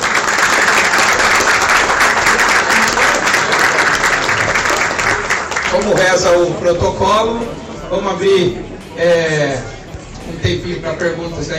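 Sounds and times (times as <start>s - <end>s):
audience applause: 0.0s - 6.6s
speech: 5.8s - 9.7s, 10.3s - 11.5s.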